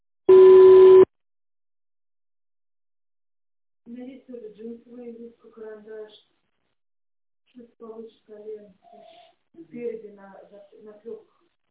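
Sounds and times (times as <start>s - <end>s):
voicemail beep tone: 0.3s - 1.1s
speech: 3.9s - 6.4s, 7.6s - 11.4s.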